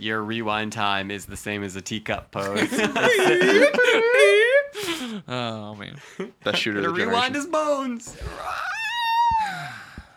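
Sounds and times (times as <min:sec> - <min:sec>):
speech: 0:00.0 - 0:04.5, 0:05.2 - 0:08.7
laughter: 0:02.4 - 0:05.1
character screaming in pain: 0:08.2 - 0:09.9.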